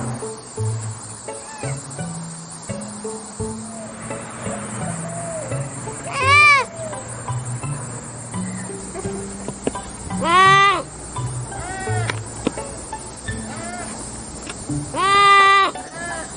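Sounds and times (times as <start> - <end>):
sloth sounds: 0.2 - 16.3.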